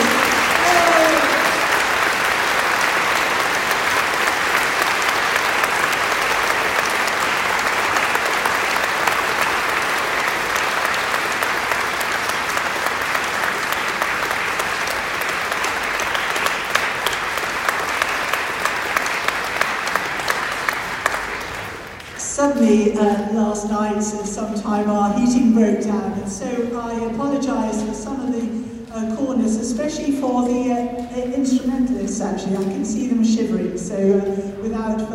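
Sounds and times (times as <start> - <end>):
large audience applause: 0.0 - 22.2
speech: 23.0 - 28.2, 29.0 - 35.1.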